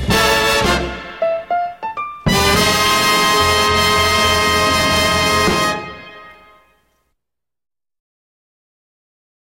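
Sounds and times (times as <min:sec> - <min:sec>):
orchestra: 0:00.0 - 0:07.0.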